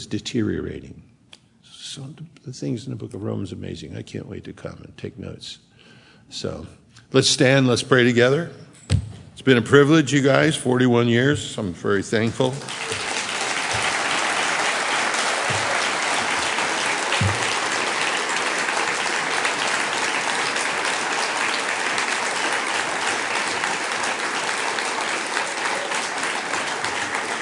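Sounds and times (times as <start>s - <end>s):
speech: 0.0s - 1.0s, 1.9s - 5.7s, 6.3s - 8.7s, 9.4s - 13.0s
audience clapping: 12.4s - 27.4s.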